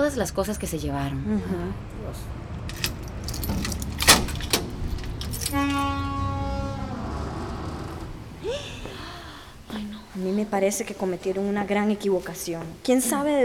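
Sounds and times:
traffic rumble: 0.0 - 13.4
speech: 0.1 - 2.9, 5.5 - 6.2, 9.7 - 13.4
keys jangling: 2.6 - 6.0
sustained tonal honk: 4.8 - 8.7.

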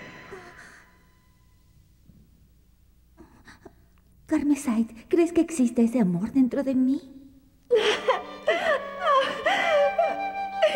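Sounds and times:
woman crying softly from happiness: 3.2 - 3.9, 7.7 - 10.7
speech: 4.3 - 7.2.

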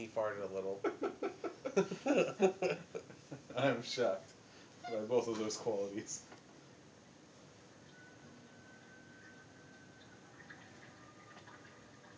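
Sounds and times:
speech: 0.0 - 3.0, 3.6 - 6.3
laughter: 0.8 - 3.5
liquor being poured into a glass: 9.2 - 12.1.

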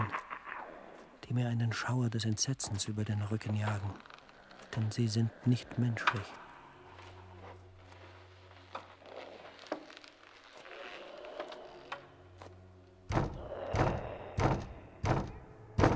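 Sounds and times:
speech: 1.3 - 4.1, 4.8 - 6.4
knocking on a door: 13.1 - 15.9.

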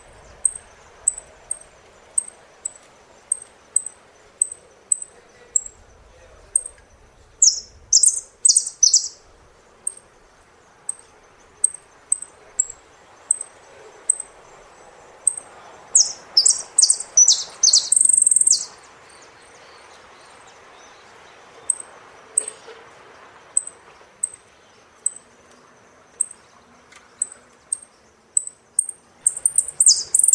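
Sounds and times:
saffron finch song: 0.0 - 30.3.

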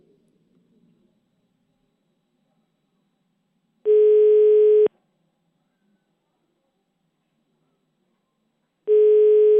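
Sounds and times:
telephone line tone beeps on an outgoing call: 3.9 - 4.9, 8.9 - 9.5.

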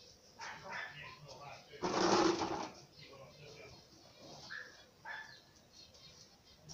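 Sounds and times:
dog barking: 0.4 - 1.2, 4.5 - 5.4.

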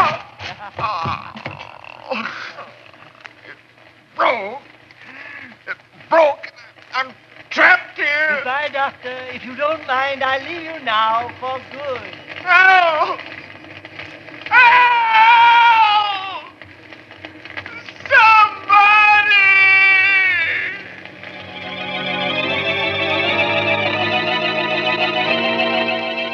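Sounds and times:
flames roaring: 0.0 - 26.3
speech: 9.0 - 13.3
man screaming: 14.5 - 16.5, 18.0 - 20.8.

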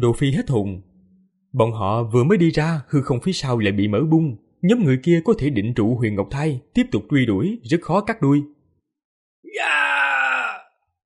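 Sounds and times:
speech: 0.0 - 0.9, 1.5 - 8.6
anguished human scream: 9.5 - 10.8.

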